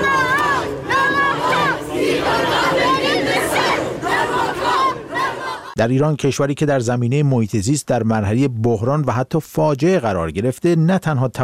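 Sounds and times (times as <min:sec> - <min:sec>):
student climate protesters in London chanting: 0:00.0 - 0:05.8
speech: 0:05.8 - 0:11.4.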